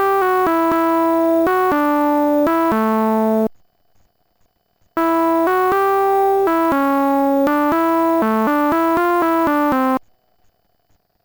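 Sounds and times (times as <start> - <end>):
pwm filtered synth: 0.0 - 3.5, 5.0 - 10.0.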